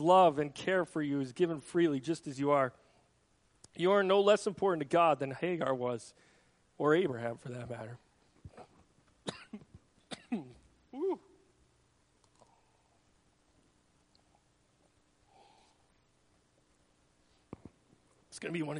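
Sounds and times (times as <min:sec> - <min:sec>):
speech: 0:00.0 - 0:02.8, 0:03.8 - 0:08.0, 0:10.3 - 0:11.3, 0:18.4 - 0:18.7
person coughing with something lodged in throat: 0:08.5 - 0:11.3
throat clearing: 0:08.5 - 0:11.4.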